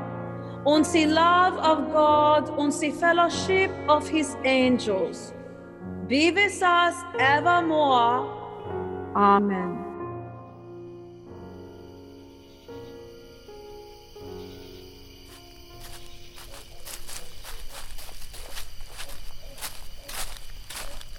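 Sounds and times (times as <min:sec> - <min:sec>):
sustained somber organ-like music: 0:00.0 - 0:21.1
speech: 0:00.6 - 0:05.4, 0:06.1 - 0:08.4, 0:09.2 - 0:09.8
footsteps crunching at a walking pace: 0:15.2 - 0:21.1.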